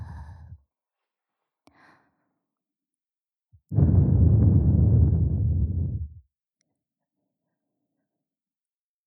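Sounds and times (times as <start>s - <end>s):
blowing into ear: 3.8s - 6.0s.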